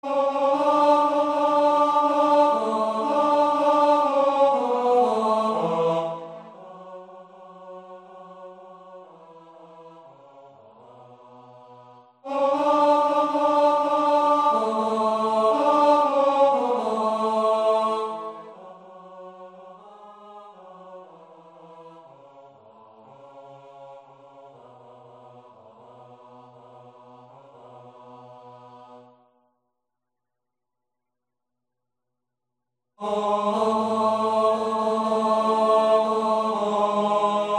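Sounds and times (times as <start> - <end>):
tenor singing: 0.0 - 9.8, 12.3 - 21.3, 33.0 - 37.5.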